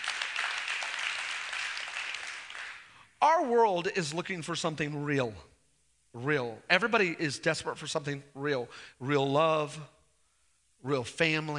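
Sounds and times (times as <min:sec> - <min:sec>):
crowd applauding: 0:00.0 - 0:02.9
speech: 0:03.4 - 0:05.5, 0:06.2 - 0:10.0, 0:10.8 - 0:11.5.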